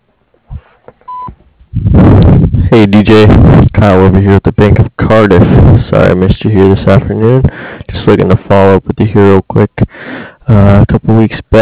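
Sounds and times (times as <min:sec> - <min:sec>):
voicemail answering machine beep: 0:01.1 - 0:01.3
speech: 0:02.7 - 0:11.6.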